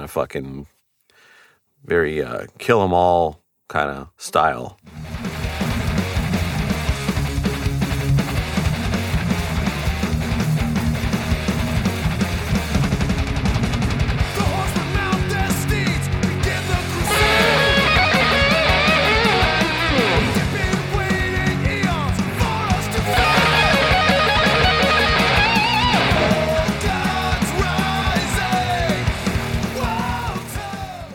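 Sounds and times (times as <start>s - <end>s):
speech: 0.1s - 0.8s, 1.8s - 5.2s
heavy rock band playing: 5.0s - 31.1s
bright guitar fills with echo effect: 17.0s - 22.0s, 22.8s - 29.1s.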